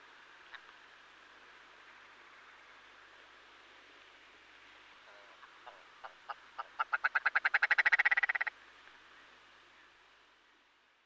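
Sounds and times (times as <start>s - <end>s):
red grouse call: 5.0s - 8.5s.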